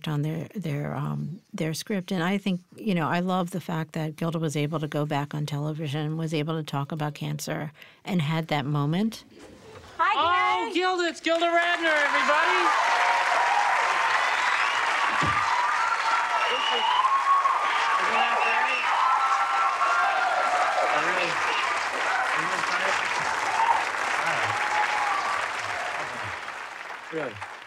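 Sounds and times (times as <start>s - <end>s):
speech: 0.0s - 9.5s, 10.2s - 13.0s, 27.1s - 27.5s
studio audience applause: 11.0s - 27.6s.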